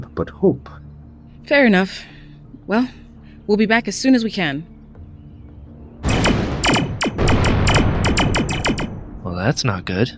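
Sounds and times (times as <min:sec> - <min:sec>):
speech: 0:00.1 - 0:00.8, 0:01.4 - 0:04.7, 0:09.4 - 0:10.1
blaster fire: 0:06.0 - 0:09.3.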